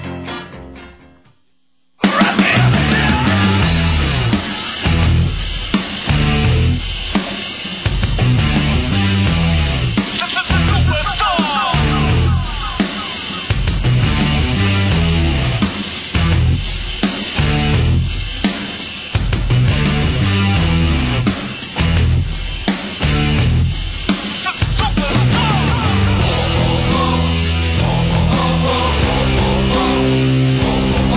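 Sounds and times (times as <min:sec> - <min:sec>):
loud rock song with driving beat on the radio: 0:02.0 - 0:31.1.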